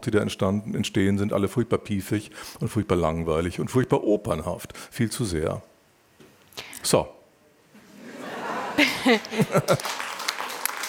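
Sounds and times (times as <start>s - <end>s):
speech: 0.0s - 5.7s, 6.8s - 7.2s, 9.0s - 10.0s
chuckling laughter: 8.0s - 10.0s
scattered applause: 9.2s - 10.8s.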